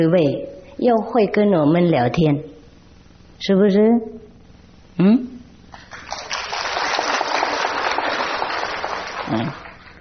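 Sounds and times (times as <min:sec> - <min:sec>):
speech: 0:00.0 - 0:02.6, 0:03.4 - 0:04.3, 0:05.0 - 0:05.4, 0:09.3 - 0:09.6
audience clapping: 0:05.7 - 0:09.9.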